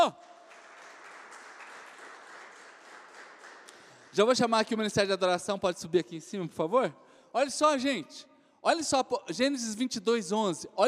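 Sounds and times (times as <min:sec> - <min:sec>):
loud audience applause: 0:00.0 - 0:04.1
speech: 0:04.2 - 0:10.8.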